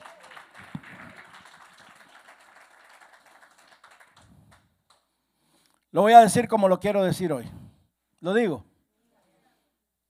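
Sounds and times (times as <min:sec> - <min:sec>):
audience applause: 0:00.0 - 0:05.0
speech: 0:06.0 - 0:07.6, 0:08.2 - 0:08.7.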